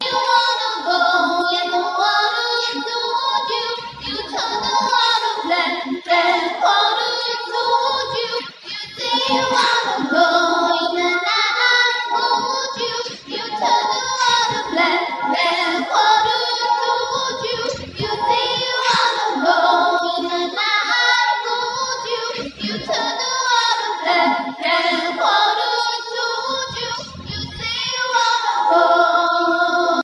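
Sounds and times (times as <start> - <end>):
vocals: 0.0 - 30.0.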